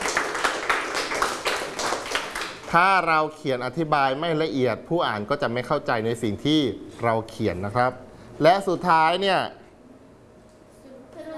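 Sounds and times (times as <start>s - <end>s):
classroom of students clapping for a classmate: 0.0s - 2.7s
speech: 2.7s - 9.6s.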